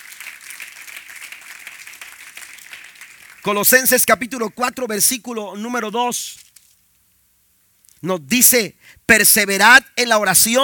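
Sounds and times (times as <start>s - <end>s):
audience applause: 0.0s - 3.8s
speech: 3.4s - 6.4s, 8.0s - 10.6s.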